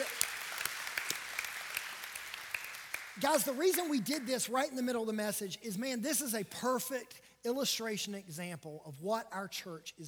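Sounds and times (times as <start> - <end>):
audience applauding: 0.0 - 4.4
speech: 3.2 - 10.0.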